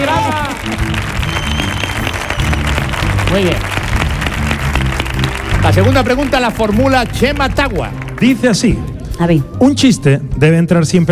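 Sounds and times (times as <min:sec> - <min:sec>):
audience applause: 0:00.0 - 0:08.6
speech: 0:03.4 - 0:03.8, 0:05.6 - 0:11.1.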